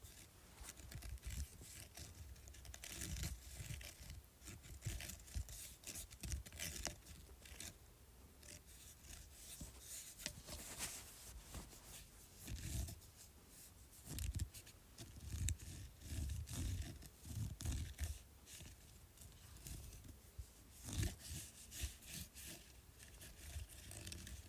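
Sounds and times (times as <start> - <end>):
scratching on a bumpy surface: 0.0 - 7.8, 8.4 - 24.4.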